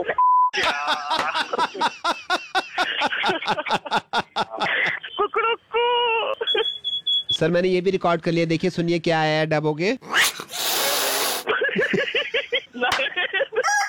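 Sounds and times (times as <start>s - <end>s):
speech: 0.0s - 2.3s, 7.4s - 10.4s
laughter: 0.0s - 6.8s, 11.5s - 13.8s
censor bleep over swearing: 6.4s - 7.4s.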